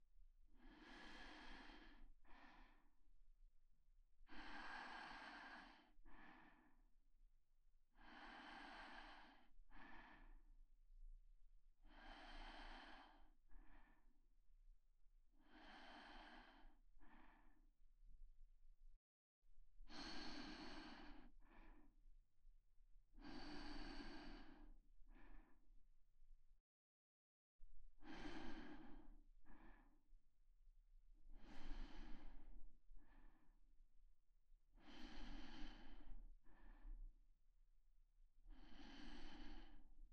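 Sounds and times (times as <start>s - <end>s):
person breathing in sleep: 0.6s - 3.0s, 4.2s - 6.9s, 7.9s - 10.5s, 11.8s - 14.1s, 15.3s - 17.6s, 19.8s - 22.0s, 23.1s - 25.7s, 27.9s - 30.1s, 31.2s - 33.6s, 34.7s - 37.2s, 38.4s - 40.1s.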